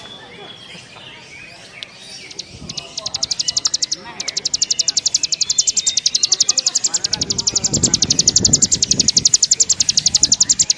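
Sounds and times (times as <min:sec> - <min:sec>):
Bar-winged prinia pouring out rapid high clicking notes: 0:00.0 - 0:10.7.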